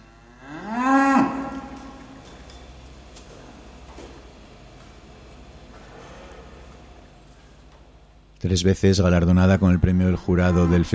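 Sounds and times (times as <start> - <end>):
cow mooing: 0.0 - 2.0
speech: 8.4 - 10.9.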